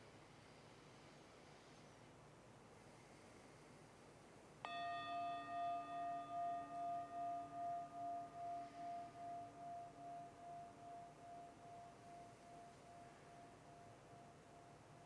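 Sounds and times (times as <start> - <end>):
meditation bell: 4.6 - 15.0.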